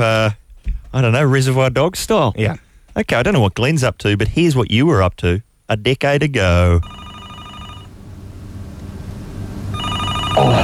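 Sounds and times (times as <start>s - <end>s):
speech: 0.0s - 7.0s, 10.4s - 10.6s
telephone ringing: 6.8s - 7.9s, 9.7s - 10.6s.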